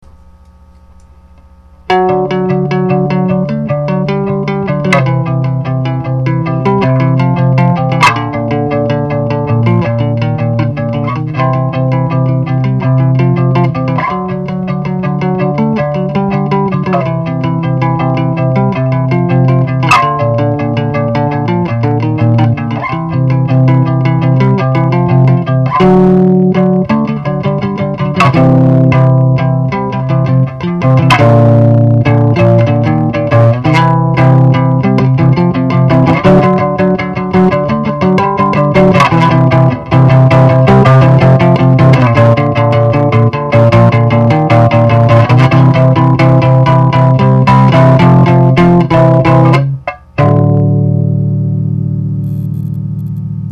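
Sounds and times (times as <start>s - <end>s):
bass melody: 0.0s - 53.5s.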